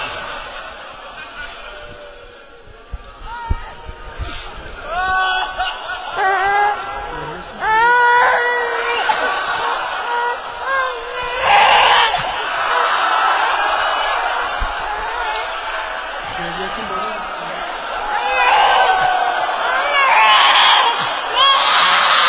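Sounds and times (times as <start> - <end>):
laughter: 0.0 - 3.2, 3.8 - 20.1
baby crying: 5.0 - 13.0, 14.8 - 22.2.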